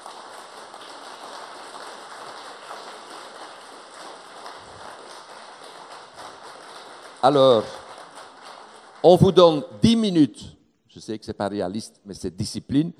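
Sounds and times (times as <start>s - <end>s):
audience applauding: 0.0s - 10.3s
speech: 7.2s - 7.8s, 9.0s - 12.9s.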